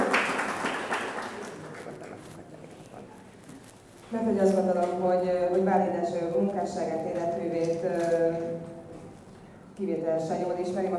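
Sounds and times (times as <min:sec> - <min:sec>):
audience applause: 0:00.0 - 0:02.2
speech: 0:04.1 - 0:08.8, 0:09.8 - 0:10.9.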